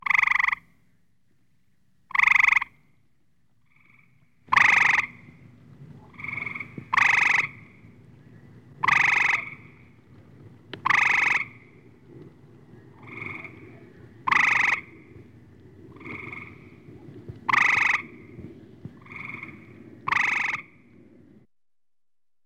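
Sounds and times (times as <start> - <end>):
gray treefrogs giving pulsed trills: 0.0 - 0.8, 2.1 - 2.8, 3.7 - 5.4, 6.0 - 10.0, 10.8 - 12.0, 12.7 - 18.4, 19.0 - 20.9
low rumbling background: 2.9 - 21.5.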